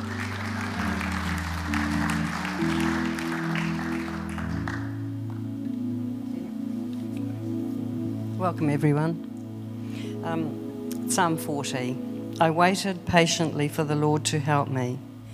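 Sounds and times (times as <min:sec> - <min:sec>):
church congregation clapping for the psalm reader: 0:00.0 - 0:05.4
sustained musical tones: 0:00.0 - 0:11.0
speech: 0:08.4 - 0:09.3, 0:10.2 - 0:15.1.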